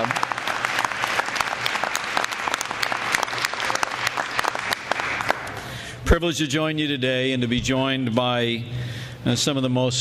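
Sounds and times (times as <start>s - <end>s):
audience applause for children: 0.0s - 5.6s
speech: 6.1s - 10.0s.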